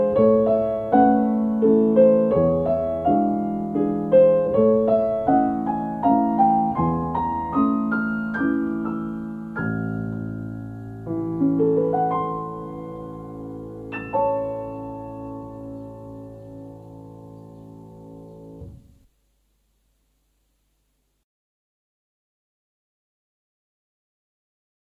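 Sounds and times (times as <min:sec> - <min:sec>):
waltz music: 0:00.0 - 0:18.8.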